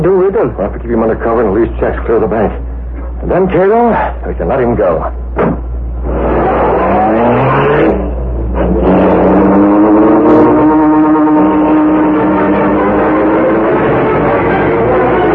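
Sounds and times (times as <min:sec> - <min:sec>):
speech: 0:00.4 - 0:05.6, 0:07.2 - 0:09.0
car engine starting and driving off: 0:05.7 - 0:15.3.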